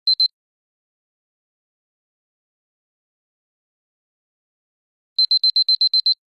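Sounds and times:
clock alert: 0.1 - 0.3, 5.2 - 6.2.

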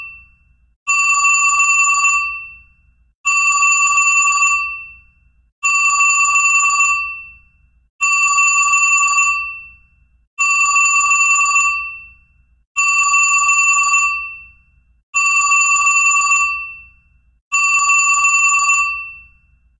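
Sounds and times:
vintage telephone: 0.9 - 2.4, 3.3 - 4.8, 5.6 - 7.2, 8.0 - 9.6, 10.4 - 12.0, 12.8 - 14.3, 15.2 - 16.7, 17.5 - 19.2.

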